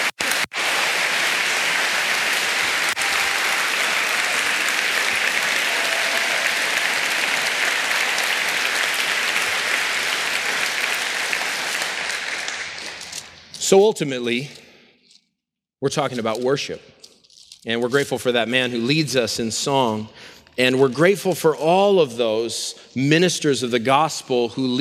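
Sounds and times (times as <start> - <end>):
audience clapping loudly: 0.0 - 13.4
speech: 13.7 - 14.6, 15.8 - 17.0, 17.6 - 24.8.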